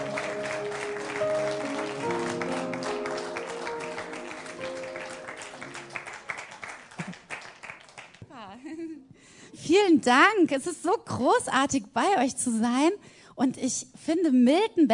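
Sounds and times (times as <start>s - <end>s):
audience applause: 0.0s - 8.2s
speech: 9.7s - 14.9s.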